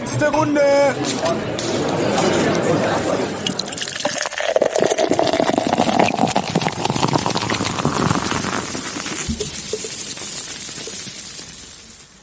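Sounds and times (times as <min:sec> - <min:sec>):
speech: 0:00.1 - 0:03.3
draught beer pouring from a tap: 0:02.5 - 0:12.2.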